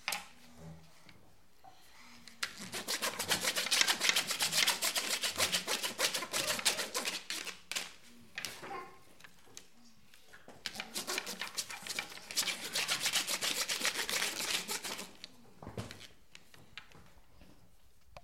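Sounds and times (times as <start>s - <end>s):
improvisation on corrugated cardboard: 2.4s - 8.8s, 10.6s - 16.3s.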